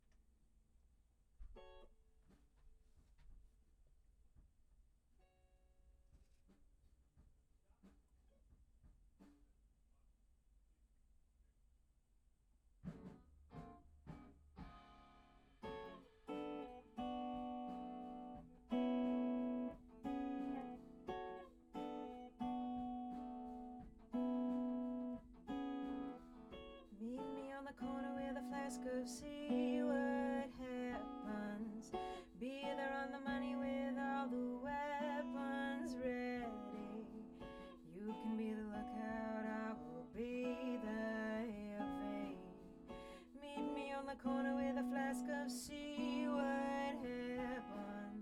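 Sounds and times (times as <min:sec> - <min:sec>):
acoustic guitar: 0:12.8 - 0:48.1.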